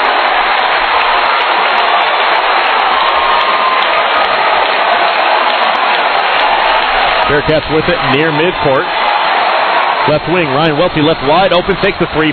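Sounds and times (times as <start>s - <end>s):
arena crowd cheering and applauding: 0.0s - 12.3s
speech: 7.3s - 9.1s, 10.1s - 12.3s.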